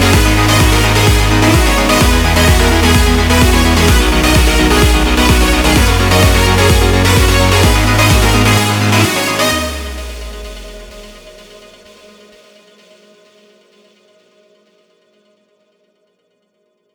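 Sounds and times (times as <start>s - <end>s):
crushed distorted guitar: 0.0s - 11.0s.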